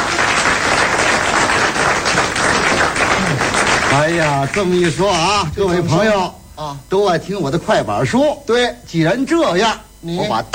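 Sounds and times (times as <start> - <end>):
audience applause: 0.0 - 6.1
speech: 4.0 - 10.5.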